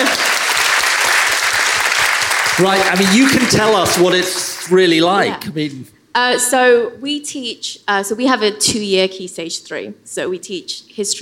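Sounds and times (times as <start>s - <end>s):
audience applause: 0.0s - 5.2s
speech: 2.6s - 11.2s.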